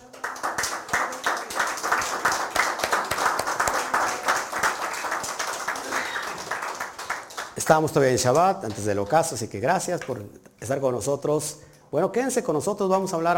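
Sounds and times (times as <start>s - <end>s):
audience applause: 0.0s - 7.8s
speech: 7.7s - 13.3s.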